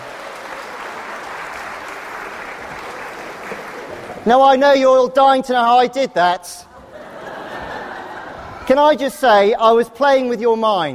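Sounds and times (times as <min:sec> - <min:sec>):
audience clapping: 0:00.0 - 0:04.3
speech: 0:04.2 - 0:06.7, 0:08.7 - 0:10.9
laughter: 0:06.7 - 0:08.9.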